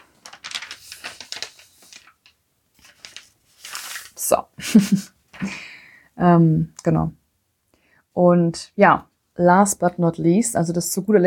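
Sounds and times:
paper page turning: 0.0 - 4.3
speech: 4.3 - 5.6, 6.2 - 7.2, 8.2 - 11.2.

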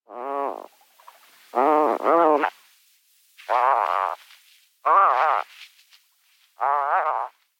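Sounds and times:
harsh rasping snoring-like bird calls: 0.1 - 0.7, 1.5 - 2.6, 3.5 - 4.2, 4.9 - 5.5, 6.6 - 7.4.

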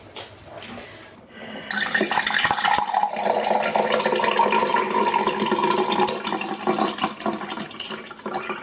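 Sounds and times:
iced tea pouring into a glass: 1.7 - 8.6.

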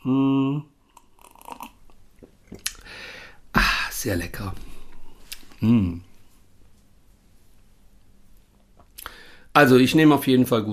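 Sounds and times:
sipping and swallowing green tea with ginger, honey and fresh mint: 0.9 - 2.8
speech: 4.0 - 4.7, 5.6 - 6.1, 9.6 - 10.7.

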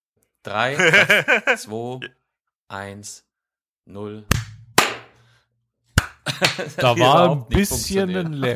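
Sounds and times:
speech: 0.4 - 3.3, 3.9 - 4.4, 6.4 - 8.5
laughter: 0.7 - 2.0, 6.2 - 8.5
hand claps: 4.3 - 5.2, 6.0 - 6.8.

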